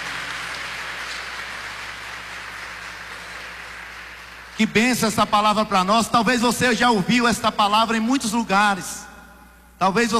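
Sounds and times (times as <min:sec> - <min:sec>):
audience applauding: 0:00.0 - 0:05.2
speech: 0:04.6 - 0:09.1, 0:09.8 - 0:10.1.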